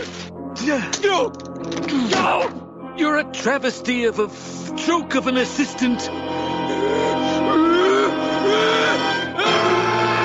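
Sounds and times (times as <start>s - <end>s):
speech: 0.6s - 6.3s
person moaning and whimpering: 6.5s - 10.1s.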